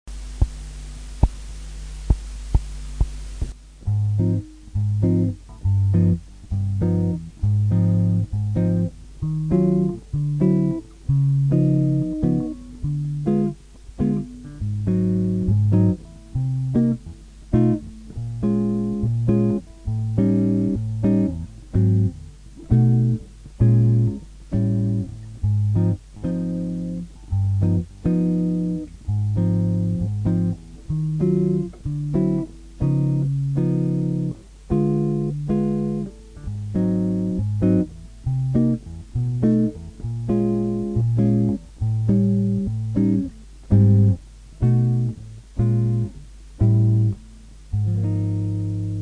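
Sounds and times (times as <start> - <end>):
blues guitar accompaniment: 3.8 - 49.0.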